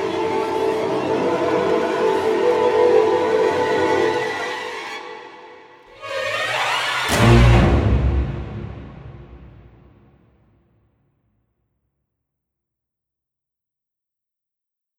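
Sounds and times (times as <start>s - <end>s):
scary scene music: 0.0s - 10.3s.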